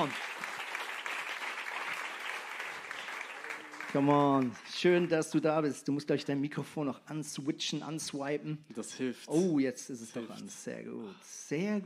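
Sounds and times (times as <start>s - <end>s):
speech: 0.0s - 0.2s, 3.9s - 11.8s
audience applause: 0.0s - 5.3s.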